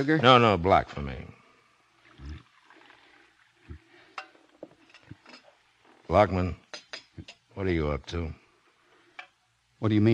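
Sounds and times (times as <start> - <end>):
speech: 0.0 - 1.4, 6.1 - 6.6, 7.2 - 8.4, 9.8 - 10.1
coffee pouring and splashing: 1.4 - 7.1
dripping: 1.4 - 7.5.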